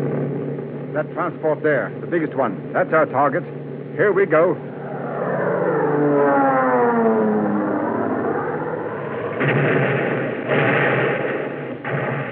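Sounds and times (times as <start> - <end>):
Japanese fighter planes roaring: 0.0 - 12.3
speech: 1.0 - 4.7, 6.0 - 7.1.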